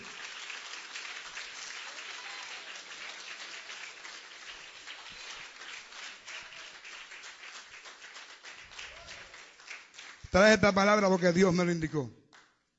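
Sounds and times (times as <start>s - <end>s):
audience applauding: 0.0s - 12.5s
speech: 10.3s - 12.2s.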